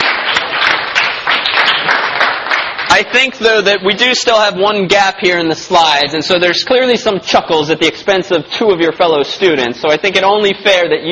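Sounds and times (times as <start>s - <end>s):
round of applause: 0.0s - 3.4s
speech: 3.0s - 11.1s.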